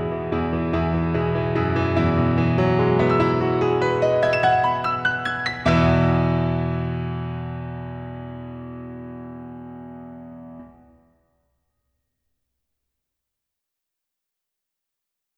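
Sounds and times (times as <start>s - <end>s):
piano: 0.0s - 11.2s.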